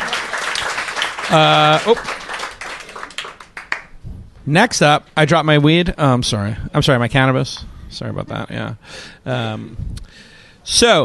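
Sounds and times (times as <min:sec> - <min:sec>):
audience applause: 0:00.0 - 0:03.9
speech: 0:01.3 - 0:02.2, 0:04.5 - 0:11.0.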